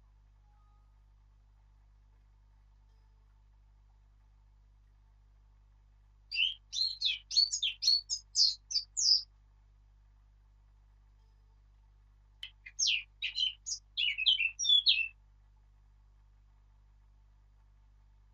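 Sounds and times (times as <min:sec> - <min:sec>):
Eurasian blackcap singing: 0:06.3 - 0:09.2, 0:12.4 - 0:15.1.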